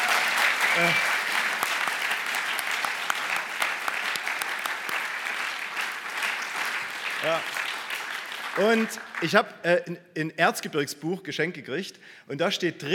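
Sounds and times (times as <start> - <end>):
crowd applause: 0.0 - 9.4
speech: 0.8 - 1.1, 7.2 - 7.6, 8.6 - 12.9.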